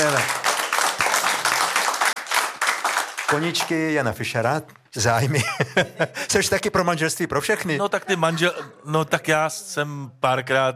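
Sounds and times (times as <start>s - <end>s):
studio audience applause on a talk show: 0.0s - 4.0s
speech: 3.3s - 10.7s
laughter: 5.2s - 6.5s.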